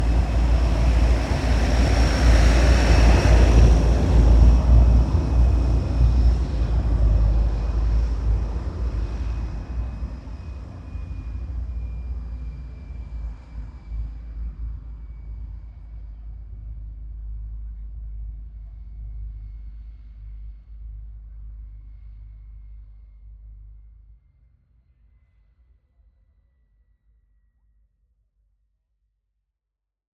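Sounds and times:
MiG-15 UTI jet aircraft departing: 0.0s - 17.9s.

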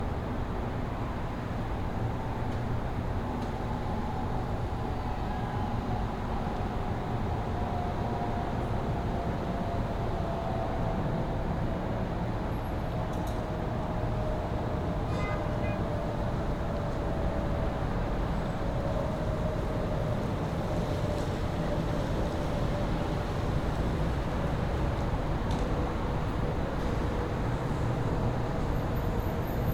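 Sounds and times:
distant city traffic at sunset on a rooftop: 0.0s - 29.7s.

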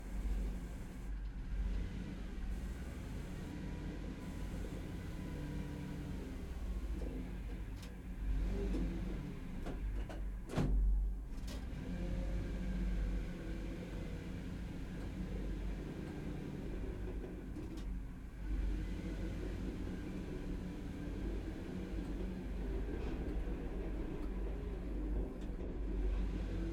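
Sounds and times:
BRDM-2 armored personnel carrier slow drive and stop, interior: 0.0s - 10.8s, 11.4s - 26.7s.

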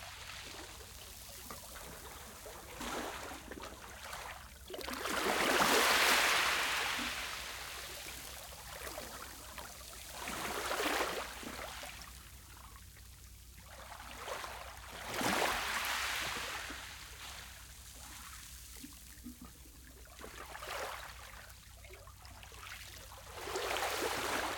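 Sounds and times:
gentle waves on a small beach with echo: 0.0s - 12.2s, 13.8s - 19.4s, 22.4s - 24.5s.

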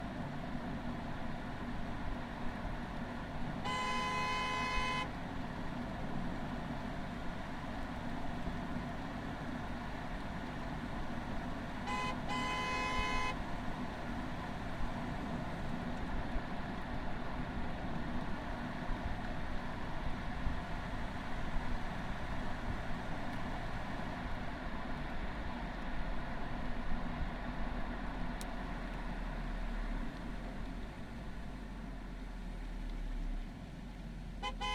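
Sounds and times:
VW Golf Variant TDI 2019 diesel engine onboard starting, driving, reversing, stopping: 0.0s - 34.7s
VW Golf Variant TDI 2019 horn: 3.6s - 5.2s, 11.8s - 13.6s, 34.4s - 34.7s.

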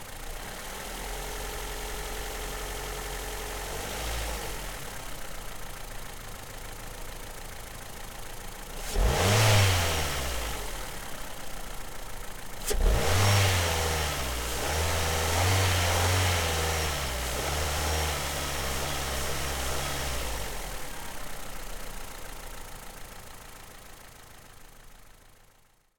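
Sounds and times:
Ford Fusion 1.6 Duratec petrol engine starting: 0.0s - 25.6s
Ford Fusion petrol engine revving in neutral: 8.7s - 11.2s, 12.6s - 21.0s.

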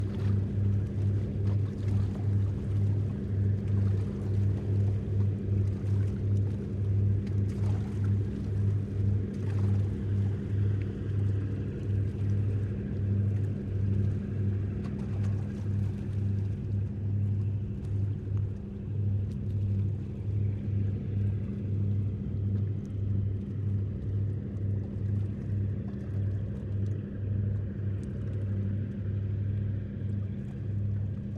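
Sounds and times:
Wellcraft Scarab 34 boat approaching and moving away: 0.0s - 31.3s.

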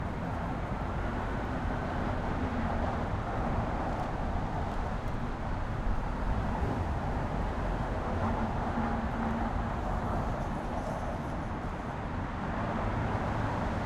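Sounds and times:
car traffic on Brooklyn Bridge in New York: 0.0s - 13.8s.

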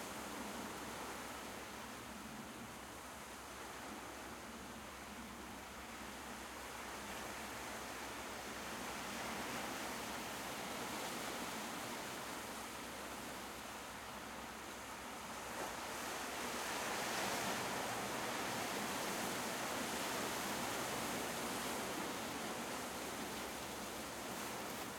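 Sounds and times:
constant sea wash on a seashore from a cliff at sunset: 0.0s - 24.9s.

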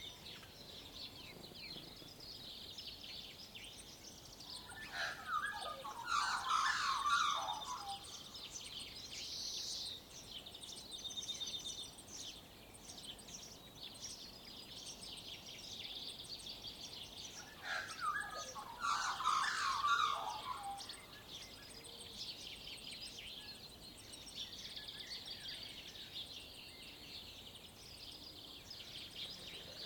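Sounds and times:
dawn chorus birds on rural farmland in Waikato New Zealand: 0.0s - 29.8s
magpie on rural farmland in Waikato New Zealand: 5.0s - 8.0s, 17.6s - 20.8s.

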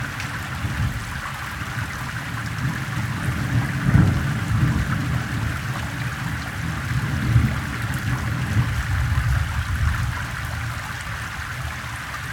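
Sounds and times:
gentle rain recorded through an air duct: 0.0s - 12.3s
water running off a pebble street: 0.0s - 12.3s
background thunder: 2.6s - 10.6s.

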